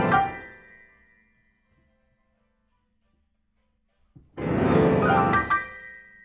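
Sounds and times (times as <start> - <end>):
rock and roll piano: 0.0 - 0.6, 4.3 - 6.1.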